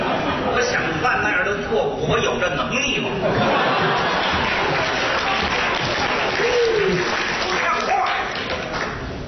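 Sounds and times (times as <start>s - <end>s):
laughter: 0.0s - 1.0s, 3.1s - 8.8s
speech: 1.0s - 4.2s
audience applause: 3.5s - 9.1s.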